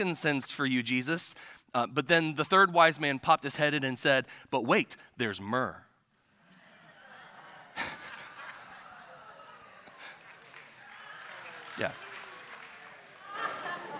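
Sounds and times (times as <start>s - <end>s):
speech: 0.0s - 5.8s, 11.8s - 12.0s
laughter: 6.4s - 10.7s, 13.1s - 13.9s
congregation applauding: 7.7s - 13.9s.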